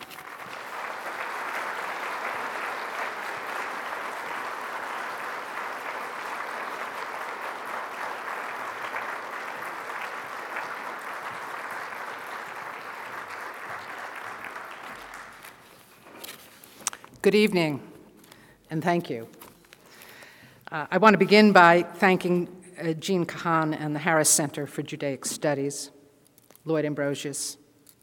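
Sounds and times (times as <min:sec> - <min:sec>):
audience applause at an evening forum lecture in Nebraska: 0:00.0 - 0:16.2
speech: 0:17.2 - 0:17.9, 0:18.7 - 0:19.4, 0:20.7 - 0:26.0, 0:26.6 - 0:27.6.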